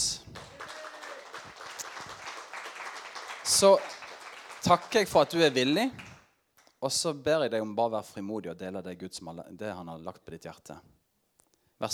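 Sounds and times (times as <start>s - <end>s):
audience applause: 0.0s - 6.2s
speech: 3.6s - 3.9s, 4.6s - 6.0s, 6.8s - 11.0s.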